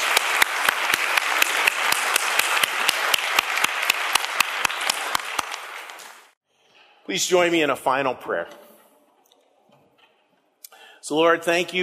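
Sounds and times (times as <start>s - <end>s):
audience round of applause: 0.0s - 6.4s
speech: 7.1s - 8.6s, 11.1s - 11.8s.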